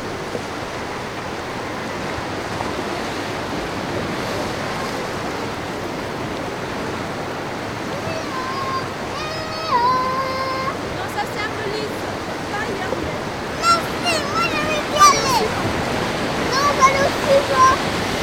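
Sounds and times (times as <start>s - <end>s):
white noise in Lesconil: 0.0s - 18.2s.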